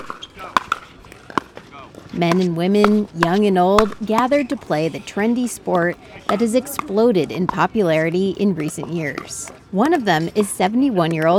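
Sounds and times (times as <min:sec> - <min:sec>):
faint murmur of voices: 0:00.0 - 0:11.3
plastic pickleballs hitting hard asphalt courts: 0:00.0 - 0:11.3
speech: 0:02.1 - 0:11.3.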